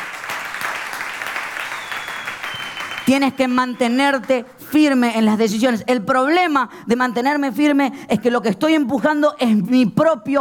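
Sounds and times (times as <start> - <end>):
audience applauding loudly: 0.0 - 4.5
speech: 3.1 - 10.4.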